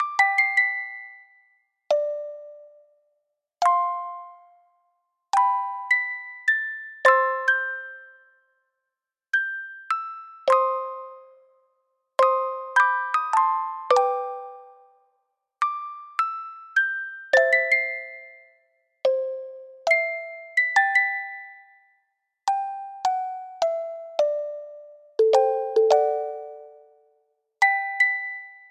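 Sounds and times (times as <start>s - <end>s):
soulful music box melody: 0.0s - 8.7s, 9.3s - 28.6s.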